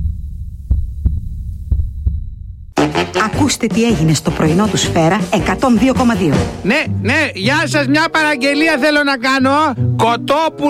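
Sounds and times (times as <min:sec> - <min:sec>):
steady low hum: 0:00.0 - 0:02.8
deep thumping heartbeat in station jingle: 0:00.0 - 0:06.7
speech: 0:03.1 - 0:10.6.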